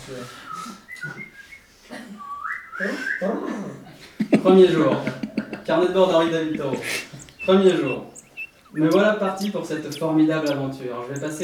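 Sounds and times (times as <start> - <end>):
person whistling a birdlike call: 0.1 - 3.4, 6.7 - 10.7
speech: 0.1 - 8.1, 8.7 - 11.4
laughter: 1.9 - 10.6.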